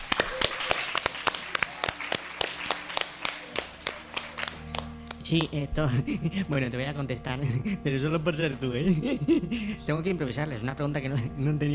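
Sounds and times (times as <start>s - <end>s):
scattered applause from a small audience: 0.0s - 5.2s
speech: 5.3s - 11.7s.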